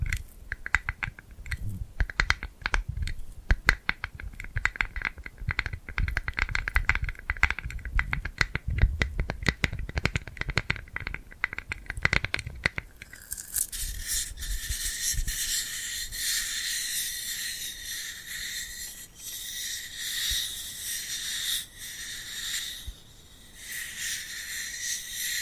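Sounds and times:
glued hands clicking and crackling: 0.0 - 15.4
glued hands peeling and rubbing hiss: 0.0 - 25.4
low rumble: 1.4 - 2.0.

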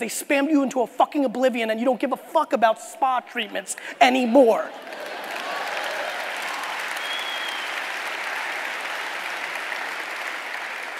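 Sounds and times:
speech: 0.0 - 5.0
audience clapping: 4.8 - 10.9.

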